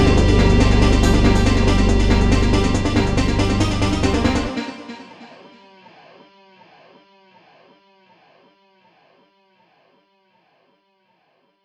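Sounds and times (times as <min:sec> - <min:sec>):
blues music: 0:00.0 - 0:05.6.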